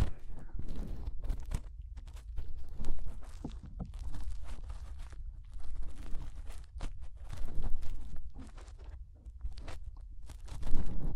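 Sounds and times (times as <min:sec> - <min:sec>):
fingers rubbing and pressing inside the ear: 0:00.0 - 0:11.1.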